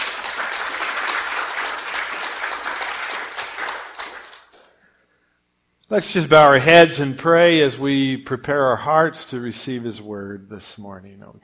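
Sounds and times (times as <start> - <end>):
church audience applause greeting a couple: 0.0 - 4.7
speech: 5.9 - 11.4.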